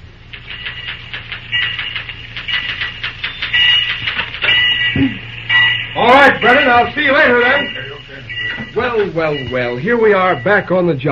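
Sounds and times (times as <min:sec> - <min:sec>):
typewriter typing in the superintendent's office: 0:00.2 - 0:05.7
speech: 0:06.2 - 0:07.8, 0:08.8 - 0:11.0.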